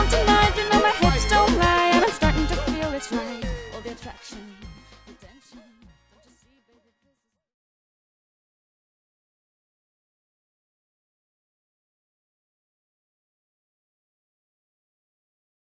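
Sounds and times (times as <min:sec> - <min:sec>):
calypso reggae music: 0:00.0 - 0:07.0.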